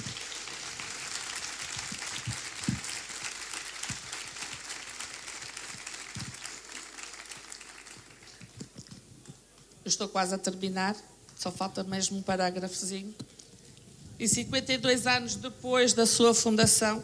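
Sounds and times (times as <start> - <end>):
crowd applause: 0.0 - 8.6
speech: 9.9 - 13.3, 14.2 - 17.0.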